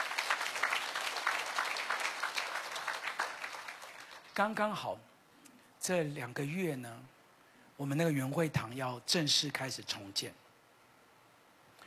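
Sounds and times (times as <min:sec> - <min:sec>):
audience clapping: 0:00.0 - 0:04.6
speech: 0:04.4 - 0:05.1, 0:05.8 - 0:07.2, 0:07.8 - 0:10.4.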